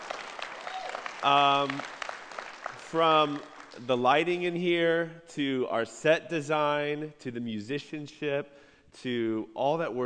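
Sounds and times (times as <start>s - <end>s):
church congregation applause for the worship arts team: 0.0s - 4.0s
speech: 1.2s - 2.0s, 2.9s - 10.0s.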